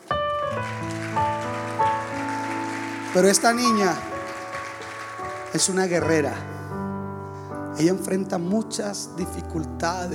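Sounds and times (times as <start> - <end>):
crowd applause: 0.0 - 6.5
speech: 3.1 - 4.1, 5.5 - 6.6, 7.8 - 10.1.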